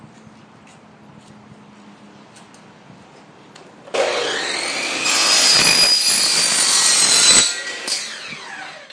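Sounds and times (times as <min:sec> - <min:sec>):
measuring and cutting: 0:04.0 - 0:08.9.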